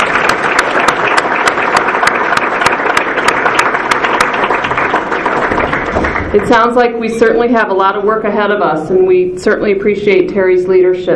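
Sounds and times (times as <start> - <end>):
crisp regular clap: 0.0 - 6.4
audience applause: 0.0 - 6.7
speech: 6.3 - 11.1.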